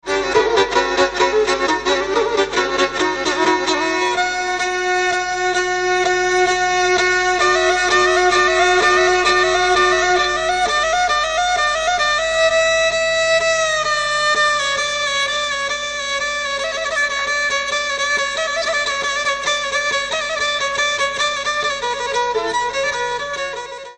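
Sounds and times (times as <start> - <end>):
kemençe playing: 0.0 - 23.9.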